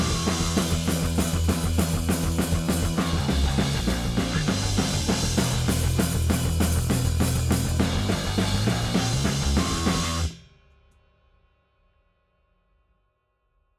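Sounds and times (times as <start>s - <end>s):
bass: 0.0s - 10.5s
drums: 0.0s - 12.8s.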